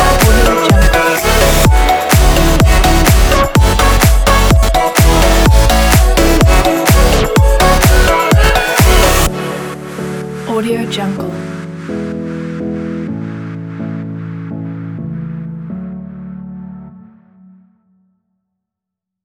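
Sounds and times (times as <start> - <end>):
energetic party pop music: 0.0 - 11.6.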